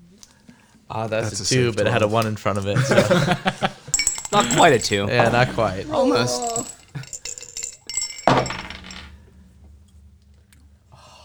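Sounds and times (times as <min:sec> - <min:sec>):
speech: 0:00.9 - 0:03.7, 0:04.4 - 0:06.7
laughter: 0:01.1 - 0:07.3
glass clinking: 0:02.8 - 0:09.3.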